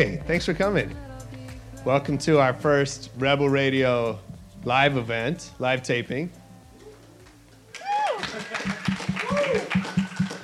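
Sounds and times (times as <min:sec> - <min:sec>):
speech: 0:00.0 - 0:01.1, 0:01.8 - 0:06.4
audience applause: 0:07.7 - 0:10.4.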